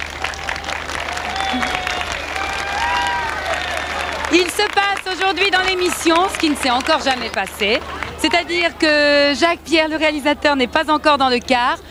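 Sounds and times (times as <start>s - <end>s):
thousands of people applauding on a beach: 0.0s - 8.8s
speech: 4.3s - 11.8s.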